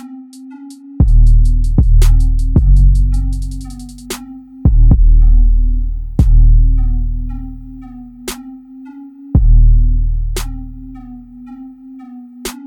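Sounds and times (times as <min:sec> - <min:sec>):
trap beat: 0:00.7 - 0:08.4, 0:09.4 - 0:11.2.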